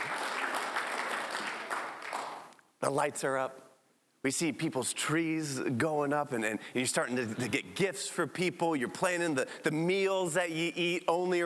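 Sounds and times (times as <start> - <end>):
audience clapping: 0.0 - 2.6
speech: 2.8 - 11.4.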